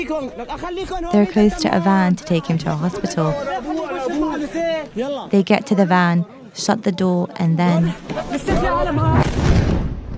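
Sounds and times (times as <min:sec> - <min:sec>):
people shouting and talking: 0:00.0 - 0:09.3
speech: 0:00.0 - 0:09.3
bomb explosion: 0:09.0 - 0:10.1.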